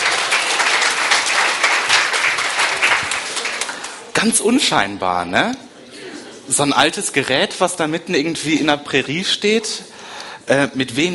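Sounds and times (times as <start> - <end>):
audience applause: 0.0 - 4.2
speech: 4.2 - 5.6, 6.5 - 9.9, 10.5 - 11.1.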